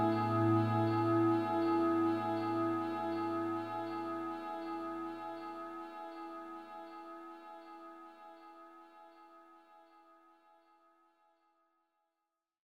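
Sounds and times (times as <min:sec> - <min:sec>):
warm tone through Strymon Compadre Iridium and DIG pedals: 0:00.0 - 0:07.3.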